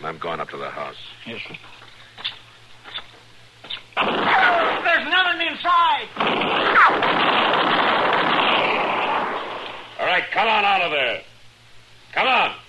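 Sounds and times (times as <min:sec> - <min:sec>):
speech: 0:00.1 - 0:02.3, 0:10.0 - 0:11.3, 0:12.1 - 0:12.6
gunshots during an armed confrontation: 0:04.0 - 0:05.0, 0:06.1 - 0:09.9.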